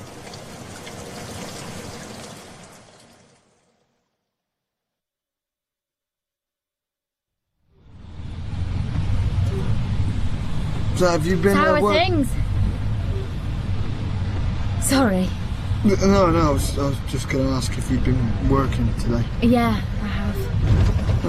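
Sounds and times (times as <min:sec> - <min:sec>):
heavy rain pouring down: 0:00.0 - 0:03.8, 0:07.9 - 0:21.2
speech: 0:11.0 - 0:12.5, 0:14.9 - 0:21.2.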